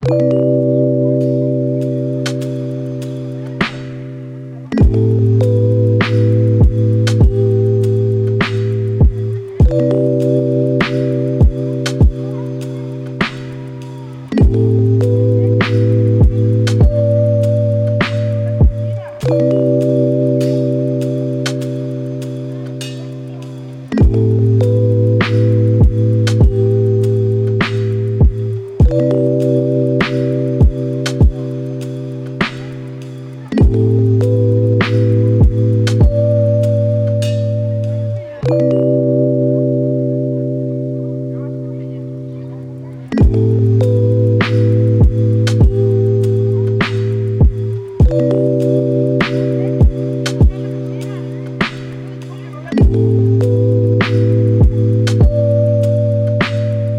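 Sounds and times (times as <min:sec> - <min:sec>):
lofi hip hop: 0:00.0 - 0:56.9.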